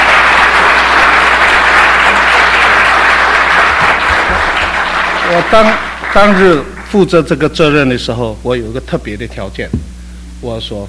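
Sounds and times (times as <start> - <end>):
church congregation applause for co-workers and volunteers: 0.0 - 7.5
speech: 5.3 - 9.8, 10.4 - 10.8.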